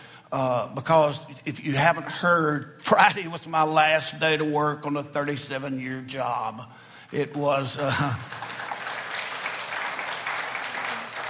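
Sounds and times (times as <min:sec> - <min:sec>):
speech: 0:00.3 - 0:08.4
crowd applause: 0:08.0 - 0:11.2.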